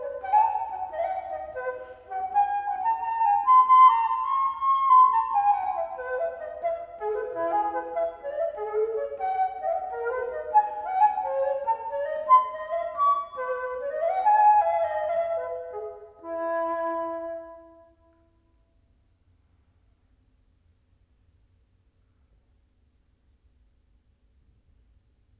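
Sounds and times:
Baroque flute playing a gigue: 0.0 - 18.0.

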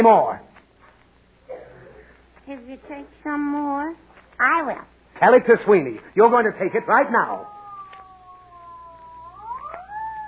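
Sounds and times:
speech: 0.0 - 0.5, 2.5 - 7.5
ambulance siren wailing: 6.9 - 10.2.

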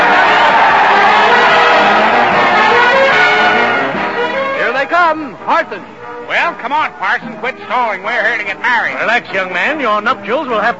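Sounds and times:
crowd cheering: 0.0 - 7.2
speech: 5.1 - 10.7.

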